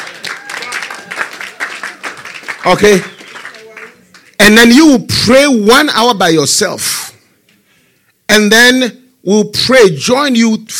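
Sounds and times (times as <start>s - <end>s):
church congregation clapping during worship: 0.0s - 4.4s
speech: 2.6s - 3.1s, 4.5s - 7.1s, 8.3s - 10.7s.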